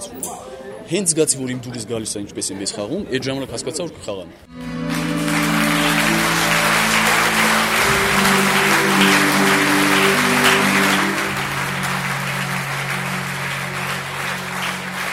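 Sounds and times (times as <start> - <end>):
speech: 0.9 - 4.7
theatre audience applauding after a stage performance: 4.5 - 15.1.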